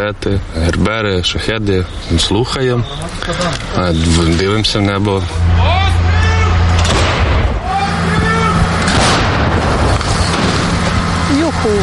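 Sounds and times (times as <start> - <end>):
speech: 0.0 - 5.8, 11.6 - 11.8
raised voices: 2.1 - 8.9
artillery gun firing a shot: 6.8 - 7.4, 8.8 - 11.0.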